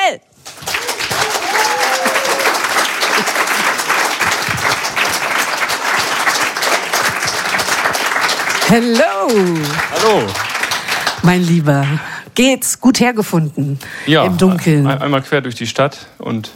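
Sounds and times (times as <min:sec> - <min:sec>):
speech: 0:00.1 - 0:00.3, 0:08.7 - 0:10.5, 0:11.2 - 0:16.5
audience applause: 0:00.4 - 0:12.0.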